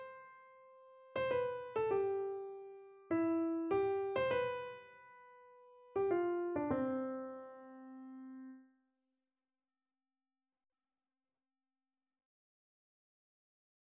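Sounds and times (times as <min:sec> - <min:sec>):
keyboard: 0:00.0 - 0:08.6.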